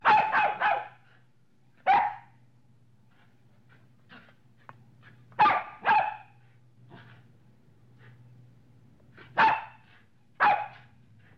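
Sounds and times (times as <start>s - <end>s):
medium-sized dog barking: 0.0s - 1.0s, 1.8s - 2.4s, 5.4s - 7.0s, 9.4s - 10.9s.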